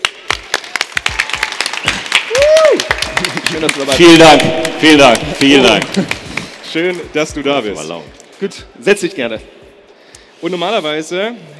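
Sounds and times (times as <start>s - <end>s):
audience applause: 0.0s - 6.7s
whoop or whistle: 2.3s - 2.9s
speech: 3.2s - 9.6s, 10.4s - 11.5s.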